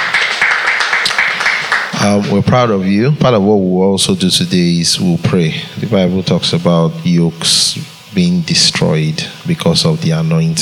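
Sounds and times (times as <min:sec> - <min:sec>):
audience clapping: 0:00.0 - 0:02.2
speech: 0:02.0 - 0:10.6.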